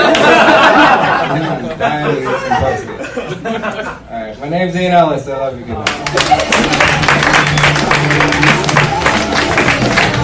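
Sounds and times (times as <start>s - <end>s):
audience applause for a comedian: 0.0s - 0.8s, 5.8s - 10.2s
laughter: 0.0s - 4.1s
speech: 2.6s - 8.6s.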